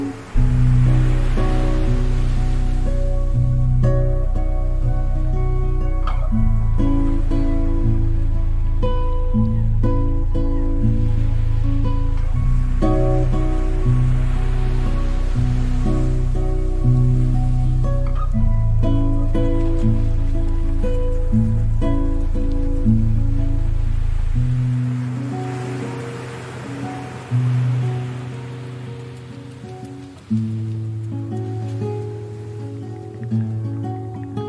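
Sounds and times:
guitar chords: 0.0s - 34.4s
waves at Shark Beach, Vaucluse: 0.0s - 34.4s
low bass: 0.2s - 25.2s.

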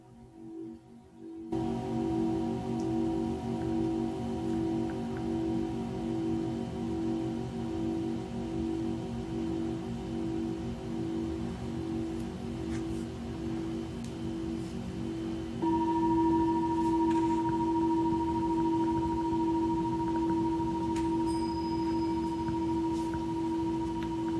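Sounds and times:
pulsing low hum: 0.0s - 24.3s
singing bowls ringing: 1.5s - 9.6s, 15.6s - 24.3s.

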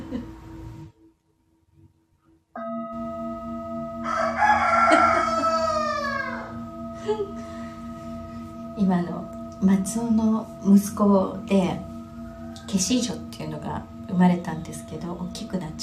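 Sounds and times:
rooster crowing: 4.0s - 6.6s, 12.0s - 13.1s
speech: 8.8s - 11.9s, 12.7s - 15.8s.

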